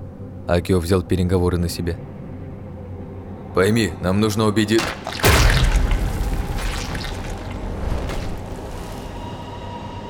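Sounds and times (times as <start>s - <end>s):
speech: 0.5s - 2.2s, 3.6s - 5.3s
player's body bursting into bloody dust on a watchtower: 4.8s - 9.2s.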